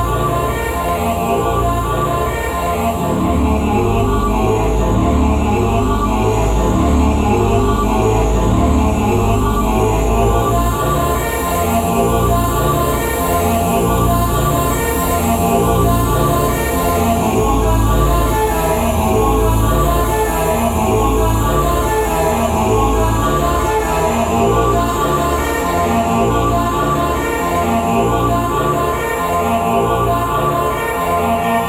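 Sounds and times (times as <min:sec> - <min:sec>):
choir singing: 0:00.0 - 0:31.6.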